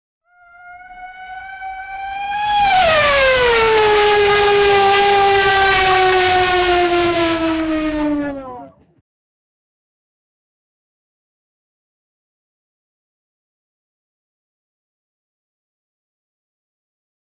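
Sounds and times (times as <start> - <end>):
Formula 1 car decelerating hard: 0.3 - 8.9.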